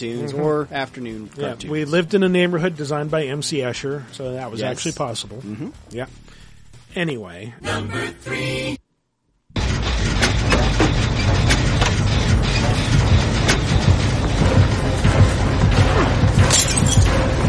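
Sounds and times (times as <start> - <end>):
speech: 0.0 - 8.8
video game engine low rumble: 9.6 - 16.4
clattering and crunching hits: 9.6 - 17.4.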